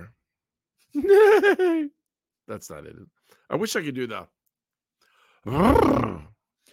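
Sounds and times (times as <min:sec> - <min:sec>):
speech: 0:00.9 - 0:04.4, 0:05.4 - 0:06.3
laughter: 0:01.0 - 0:02.0
person imitating a horse neigh: 0:05.5 - 0:06.4.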